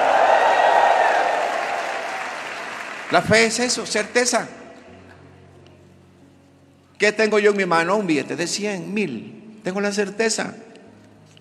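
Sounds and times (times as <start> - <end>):
applause and cheering from a church congregation: 0.0 - 4.1
speech: 3.1 - 4.6, 7.0 - 10.7.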